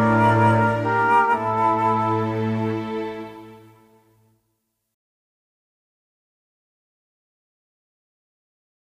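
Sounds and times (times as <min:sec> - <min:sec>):
lute: 0:00.0 - 0:04.3.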